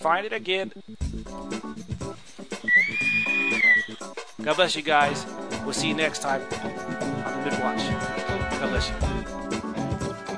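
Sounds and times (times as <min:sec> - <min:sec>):
speech: 0:00.0 - 0:01.7, 0:04.4 - 0:06.8, 0:07.4 - 0:09.4
Navy whistle shrill note: 0:02.6 - 0:04.1.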